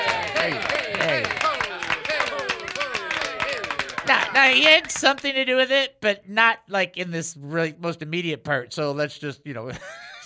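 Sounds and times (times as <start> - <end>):
canned applause with cheering: 0.0 - 5.3
speech: 0.5 - 1.2, 4.4 - 10.2.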